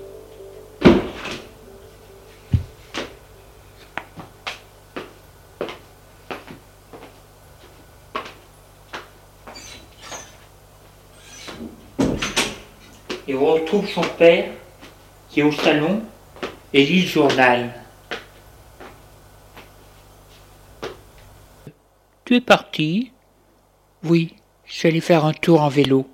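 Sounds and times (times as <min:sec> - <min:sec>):
door opening and closing: 0:00.8 - 0:01.6, 0:09.5 - 0:10.5, 0:11.1 - 0:13.0
speech: 0:13.3 - 0:14.6, 0:15.4 - 0:16.1, 0:16.7 - 0:17.8, 0:22.3 - 0:23.1, 0:24.0 - 0:26.1.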